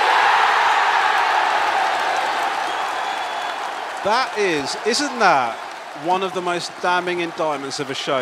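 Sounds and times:
recorded crowd noise played as effect: 0.0s - 8.2s
speech: 4.0s - 8.2s.

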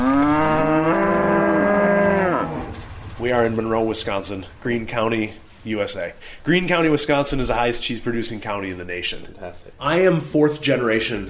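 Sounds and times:
Brown Swiss cow mooing: 0.0s - 2.8s
speech: 3.3s - 11.2s.

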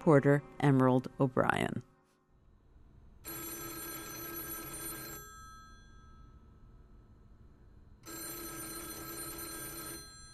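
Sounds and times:
speech: 0.0s - 1.9s
payphone on Cherry Street in Columbia, Missouri ringing: 3.3s - 6.4s, 8.0s - 10.3s.

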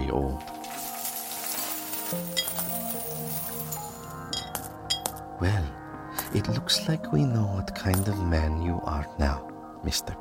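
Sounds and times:
speech: 0.1s - 0.5s, 2.1s - 2.7s, 5.4s - 10.2s
gold coins pouring into a pile: 0.6s - 4.1s.

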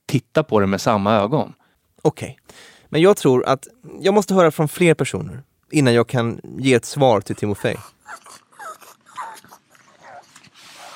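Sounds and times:
speech: 0.1s - 8.4s
pug snorting with pig-like noises: 7.3s - 10.9s.

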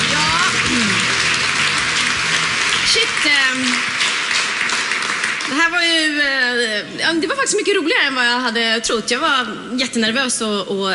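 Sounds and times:
audience applause on a Swedish entertainment show: 0.0s - 6.2s
speech: 5.6s - 10.9s.

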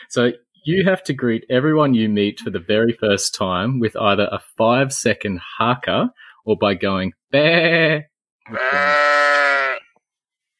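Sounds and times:
speech: 0.1s - 9.1s
person imitating sheep bleating: 7.4s - 10.0s.

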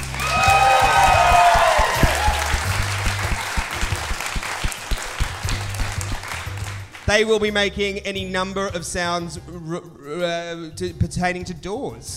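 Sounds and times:
audience applause: 0.0s - 7.1s
speech: 7.1s - 12.1s.

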